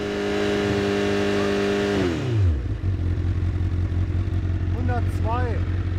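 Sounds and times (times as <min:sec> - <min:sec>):
engine revving at 6000 rpm: 0:00.0 - 0:05.9.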